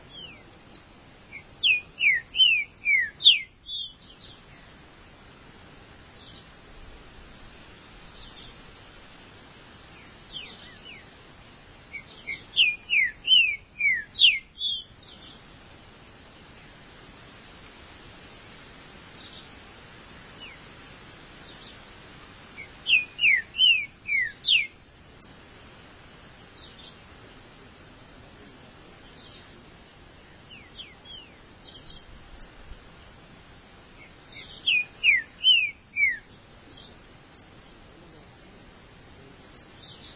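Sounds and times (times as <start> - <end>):
steady hiss: 0.0 - 40.1
green-winged saltator whistled song: 1.3 - 3.5, 11.9 - 14.8, 22.9 - 24.8, 34.4 - 36.3.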